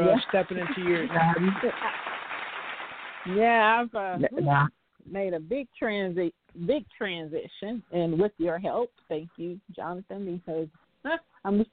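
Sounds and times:
speech: 0:00.0 - 0:02.1, 0:03.2 - 0:11.7
hand claps: 0:00.0 - 0:03.4.

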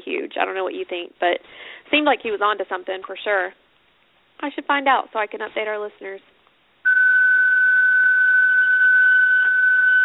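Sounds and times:
speech: 0:00.1 - 0:03.6, 0:04.4 - 0:06.3
alarm beeping: 0:06.9 - 0:10.0.

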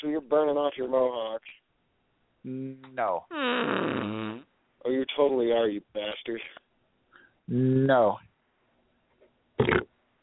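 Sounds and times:
speech: 0:00.0 - 0:01.6, 0:02.4 - 0:06.6, 0:07.5 - 0:08.3, 0:09.6 - 0:09.9
fart sound effect: 0:03.4 - 0:04.4, 0:09.6 - 0:09.9.

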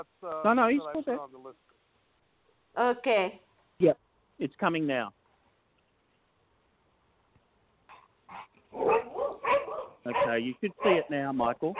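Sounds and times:
speech: 0:00.0 - 0:01.8, 0:02.8 - 0:05.2, 0:08.7 - 0:09.2, 0:10.0 - 0:11.7
dog barking: 0:07.9 - 0:11.7.

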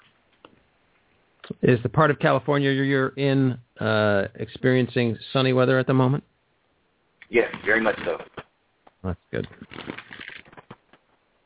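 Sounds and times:
speech: 0:01.6 - 0:06.3, 0:07.3 - 0:08.3, 0:09.0 - 0:10.0
playing cards being shuffled: 0:07.3 - 0:08.4, 0:09.4 - 0:11.1.

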